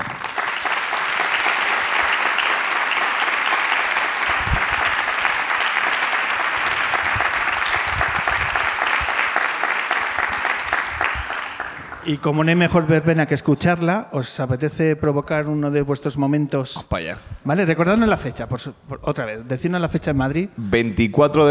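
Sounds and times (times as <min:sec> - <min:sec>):
audience applause: 0:00.0 - 0:12.6
speech: 0:12.1 - 0:21.4.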